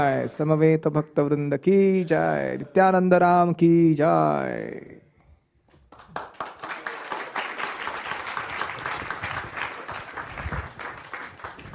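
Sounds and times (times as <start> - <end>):
speech: 0.0 - 5.0
audience applause: 5.9 - 11.7.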